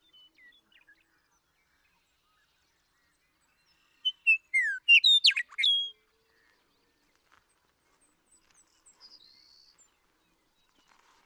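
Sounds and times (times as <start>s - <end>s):
Western meadowlark singing: 4.0s - 5.9s.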